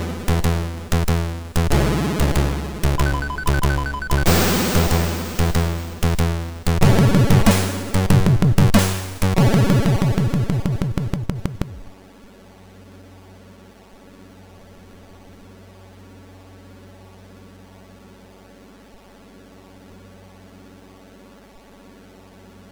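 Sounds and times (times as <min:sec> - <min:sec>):
SID MOS6581R2 chiptune intro music: 0:00.0 - 0:11.9.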